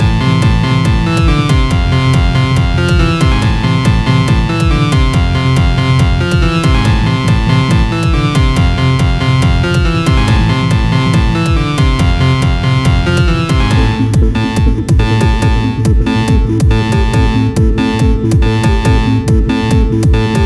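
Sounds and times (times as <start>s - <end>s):
loopable music: 0.0s - 20.4s.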